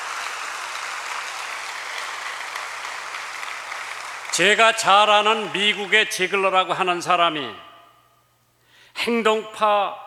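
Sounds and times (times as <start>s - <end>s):
audience applause: 0.0s - 6.0s
speech: 4.4s - 7.7s, 9.0s - 10.0s.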